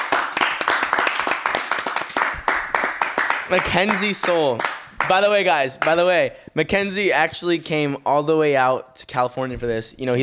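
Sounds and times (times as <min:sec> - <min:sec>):
small group clapping: 0:00.0 - 0:06.2
speech: 0:03.5 - 0:10.2.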